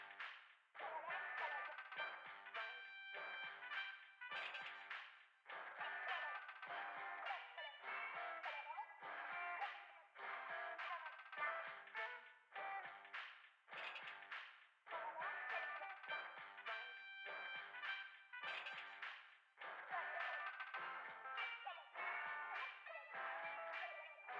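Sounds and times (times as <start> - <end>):
background music for a plaza shooting range: 0.2 - 13.3, 13.9 - 24.3.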